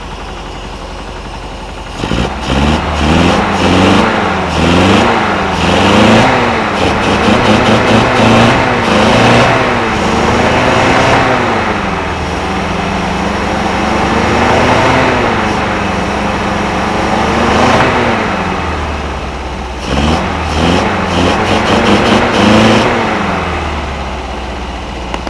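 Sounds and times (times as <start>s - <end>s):
engine: 0.0s - 25.2s.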